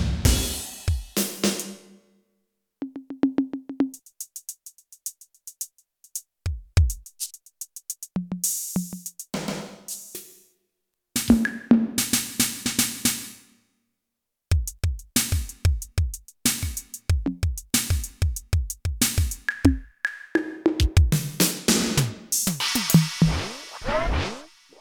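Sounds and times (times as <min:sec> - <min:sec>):
synth drum kit: 0:00.0 - 0:01.6, 0:06.5 - 0:10.1, 0:11.2 - 0:13.4, 0:14.5 - 0:24.6.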